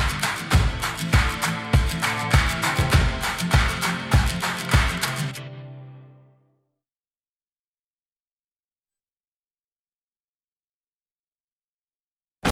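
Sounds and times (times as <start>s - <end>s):
instrumental music: 0.0s - 6.5s.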